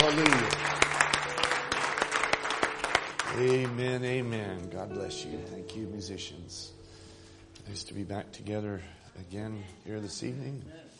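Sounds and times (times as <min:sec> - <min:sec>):
congregation applause at an evening church service: 0:00.0 - 0:04.4
speech: 0:00.1 - 0:00.7, 0:03.4 - 0:06.8, 0:07.7 - 0:10.9.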